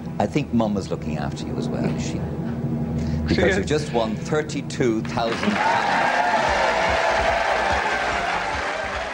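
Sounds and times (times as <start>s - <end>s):
speech: 0.2s - 2.4s, 3.3s - 6.1s
studio audience applauding enthusiastically: 5.3s - 9.1s.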